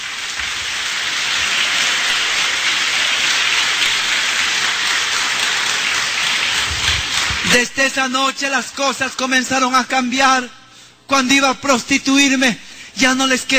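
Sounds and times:
audience applauding: 0:00.0 - 0:07.8
speech: 0:07.5 - 0:13.5.

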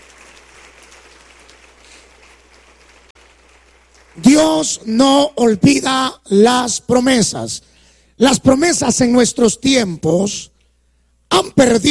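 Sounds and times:
audience applauding: 0:00.0 - 0:04.8
speech: 0:04.2 - 0:10.5, 0:11.4 - 0:11.8.

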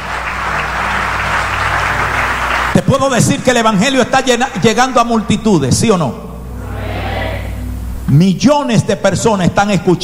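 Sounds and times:
applause: 0:00.0 - 0:03.1
speech: 0:02.8 - 0:06.3, 0:08.1 - 0:10.0.

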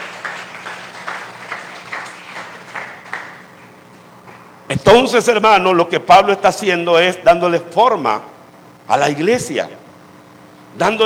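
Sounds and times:
audience clapping: 0:00.0 - 0:03.9
speech: 0:04.8 - 0:08.3, 0:08.9 - 0:09.8, 0:10.8 - 0:11.0.

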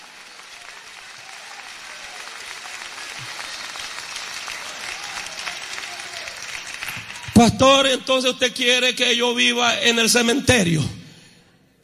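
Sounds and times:
audience clapping hands: 0:00.0 - 0:08.3
speech: 0:07.4 - 0:11.0.

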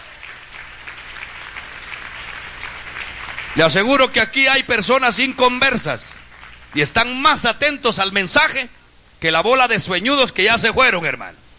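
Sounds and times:
audience clapping hands: 0:00.0 - 0:04.4, 0:05.8 - 0:07.3
speech: 0:03.6 - 0:11.4.

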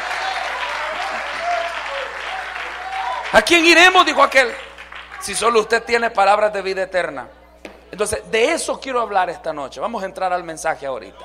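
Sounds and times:
audience applauding: 0:00.0 - 0:05.7
speech: 0:03.3 - 0:04.6, 0:05.2 - 0:11.2.

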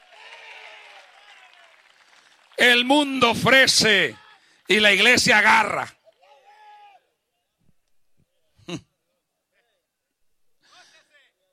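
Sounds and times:
audience applause: 0:00.0 - 0:05.2
speech: 0:02.6 - 0:06.0, 0:08.7 - 0:08.9.

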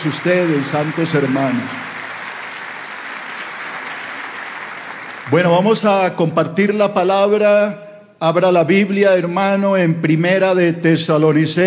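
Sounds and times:
speech: 0:00.0 - 0:01.9, 0:05.3 - 0:11.6
church congregation giving welcoming applause during a service: 0:00.0 - 0:06.1.

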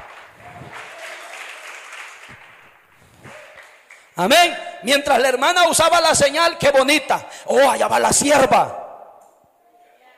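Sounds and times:
audience applause: 0:00.0 - 0:04.2
speech: 0:04.2 - 0:08.8.

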